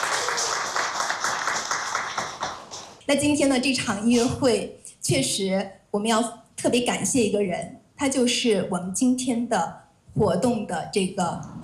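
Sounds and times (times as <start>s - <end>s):
audience clapping at a xiao flute concert: 0.0s - 3.0s
speech: 3.1s - 11.6s.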